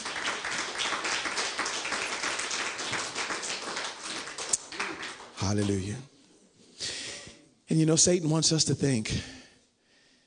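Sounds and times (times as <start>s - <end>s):
audience hand clapping: 0.0s - 5.9s
speech: 5.5s - 6.1s, 7.7s - 9.4s.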